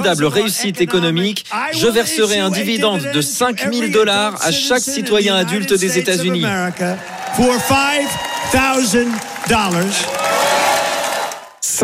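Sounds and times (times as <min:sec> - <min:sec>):
speech: 0:00.0 - 0:10.4
crowd cheering loudly: 0:05.5 - 0:11.8
clapping: 0:07.0 - 0:11.5
shouted whoops: 0:07.0 - 0:11.5.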